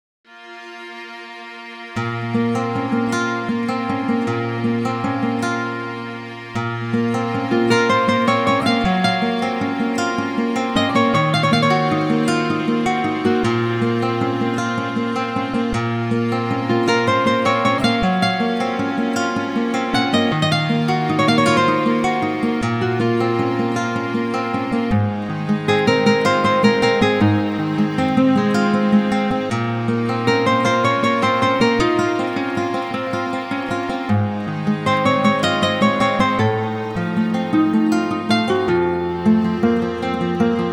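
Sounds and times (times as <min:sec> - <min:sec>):
guitar solo: 0:02.0 - 0:40.7.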